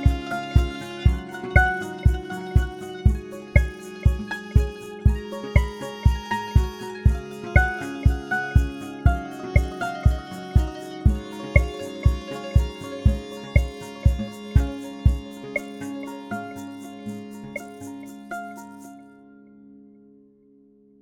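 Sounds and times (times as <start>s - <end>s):
calm balalaika music: 0.0s - 20.2s.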